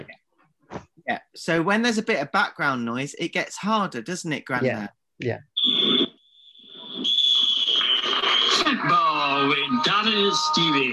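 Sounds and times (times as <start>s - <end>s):
speech: 1.1s - 5.5s, 8.8s - 10.9s
referee's whistle: 5.6s - 6.2s, 6.8s - 10.9s
match crowd: 8.0s - 10.9s.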